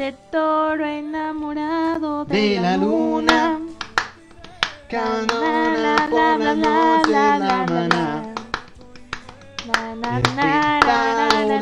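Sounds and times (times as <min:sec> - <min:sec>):
speech: 0:00.0 - 0:03.6, 0:04.9 - 0:08.3, 0:09.6 - 0:11.6
person singing: 0:00.0 - 0:11.6
hand clapping along with singing: 0:02.8 - 0:11.6.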